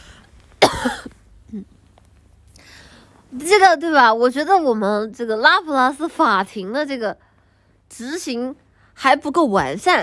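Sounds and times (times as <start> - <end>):
sharp loud cough: 0.6 - 1.2
speech: 0.8 - 1.8, 3.3 - 7.3, 7.9 - 10.0.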